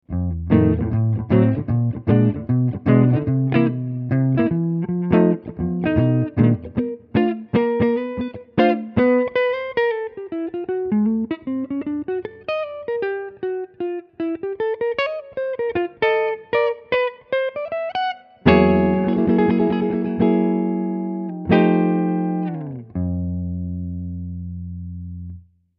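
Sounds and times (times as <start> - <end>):
guitar: 0.0 - 25.5.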